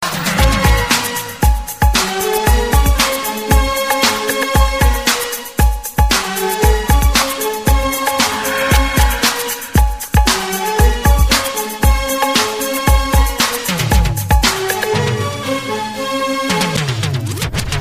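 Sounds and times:
electro music: 0:00.0 - 0:17.7.

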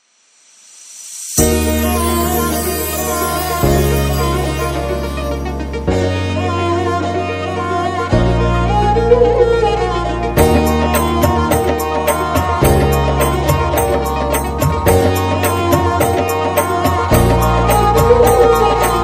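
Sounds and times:
Rajasthani folk music: 0:01.4 - 0:19.0.

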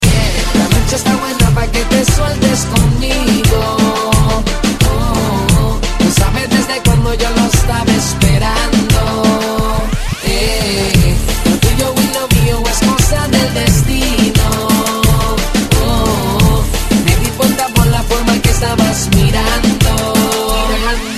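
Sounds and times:
reggaeton music: 0:00.0 - 0:21.1.

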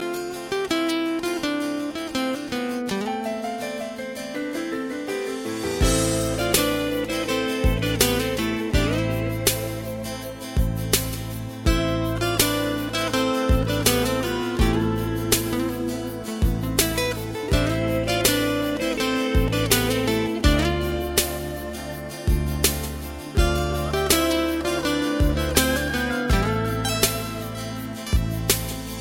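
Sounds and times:
romantic music: 0:00.0 - 0:29.0.

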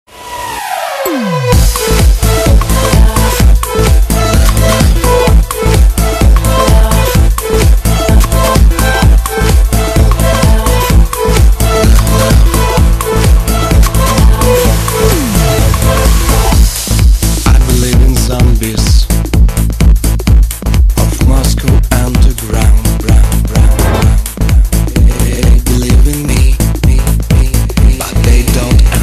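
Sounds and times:
smashing beat: 0:01.1 - 0:29.0.

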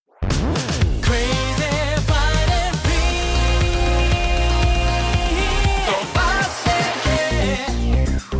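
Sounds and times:
dirty disco music: 0:00.3 - 0:08.3.

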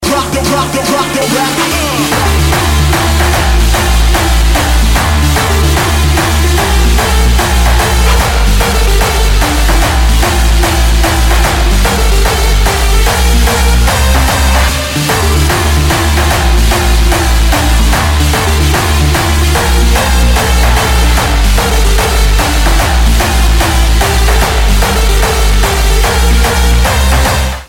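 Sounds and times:
electronic trance music: 0:00.0 - 0:27.6.

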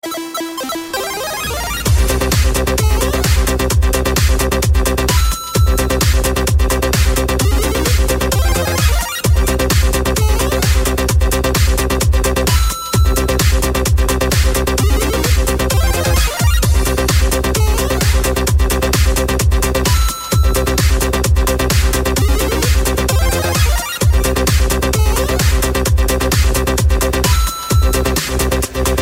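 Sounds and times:
electro music: 0:00.0 - 0:29.0.

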